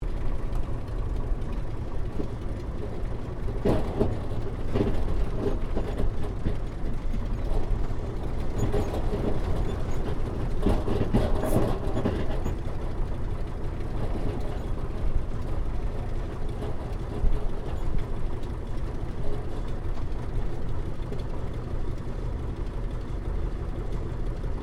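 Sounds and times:
Ryan PT-22 aircraft taxiing and engine shutdown heard from interior: 0.0 - 24.6.

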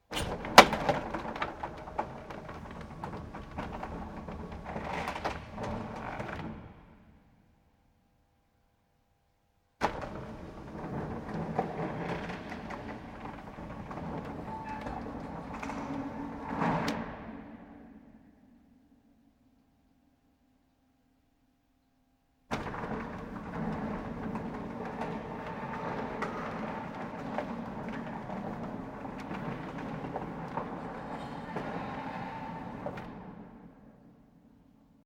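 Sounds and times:
large industrial mechanical electric door opening and closing, external: 0.0 - 7.3, 9.8 - 18.2, 22.5 - 34.5.

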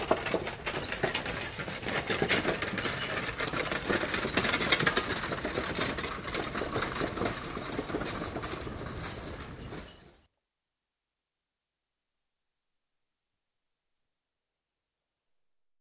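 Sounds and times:
hoofbeats of one horse pulling a cart at a walk: 0.0 - 10.2.

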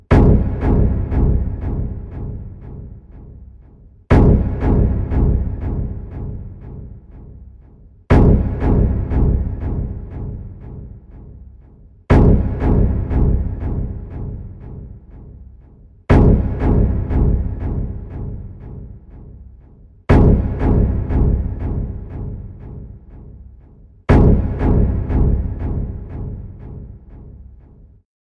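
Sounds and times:
repeating dramatic strings stab: 0.1 - 3.1, 4.1 - 7.0, 8.1 - 11.2, 12.1 - 15.1, 16.1 - 19.0, 20.1 - 23.0, 24.1 - 27.0.

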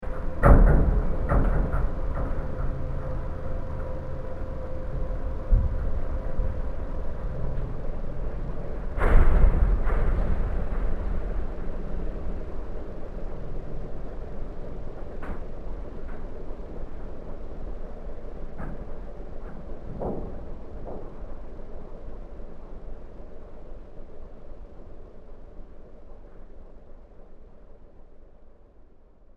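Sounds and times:
mothership loading bay spacecraft sound effect: 0.0 - 29.2.

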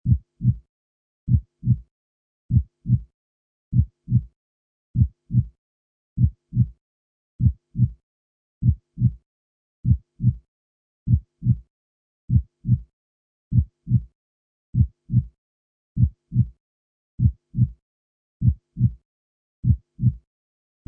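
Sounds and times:
several heartbeats: 0.0 - 0.6, 1.3 - 1.8, 2.5 - 3.0, 3.7 - 4.3, 5.0 - 5.5, 6.2 - 6.7, 7.4 - 7.9, 8.6 - 9.2, 9.8 - 10.4, 11.1 - 11.6, 12.3 - 12.8, 13.5 - 14.0, 14.8 - 15.3, 16.0 - 16.5, 17.2 - 17.7, 18.4 - 18.9, 19.6 - 20.2.

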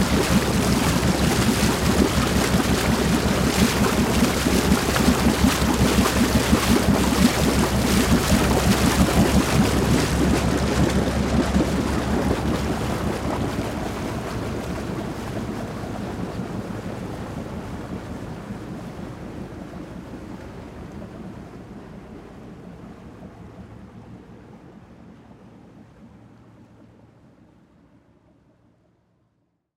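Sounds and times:
water bubbling behind catamaran: 0.0 - 23.6
catamaran driving away: 0.0 - 27.7.

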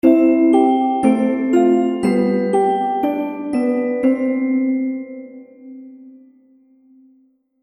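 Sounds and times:
happy baby game music: 0.0 - 5.3.

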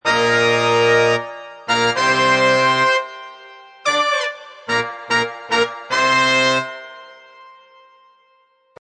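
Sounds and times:
full horn section riff in A sharp at 110 BPM: 0.0 - 3.2, 3.8 - 7.1.

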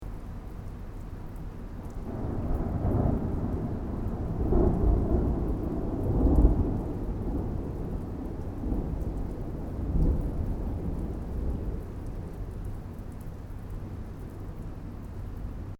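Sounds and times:
distant thunder: 2.1 - 12.6.

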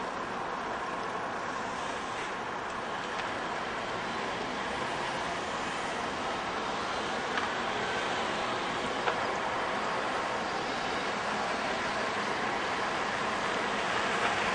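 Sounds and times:
cars and other vehicles driving by on road at 25 mph at town intersection: 0.0 - 14.5.

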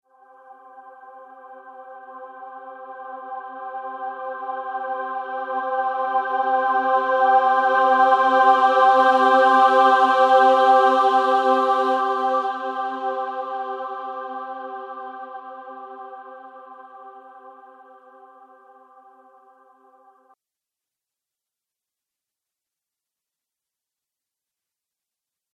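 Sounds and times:
atmospheric choir singing: 0.2 - 20.3.

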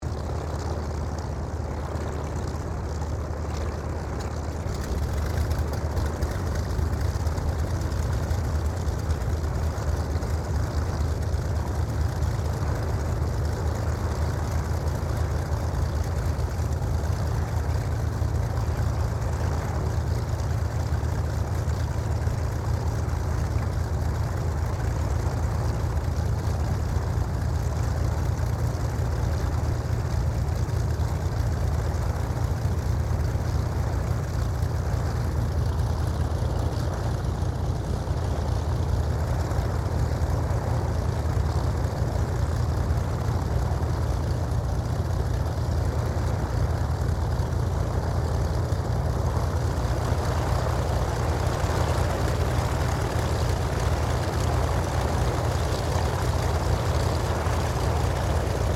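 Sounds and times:
propeller aircraft idling and taxiing on an airfield: 0.0 - 58.7.

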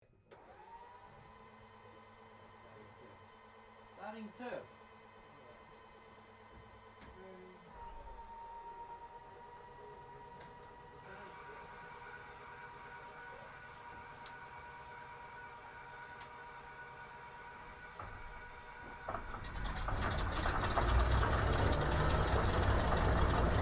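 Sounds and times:
PBY Catalina flying boat engines starting heard from interior: 19.1 - 23.6.

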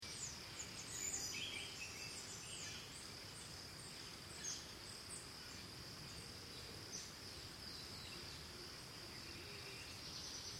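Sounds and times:
crickets trilling at a high pitch in Costa Rica: 0.0 - 10.5.

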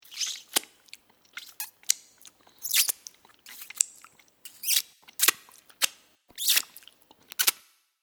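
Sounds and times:
sucking the ends of fingers clean: 0.0 - 7.6.

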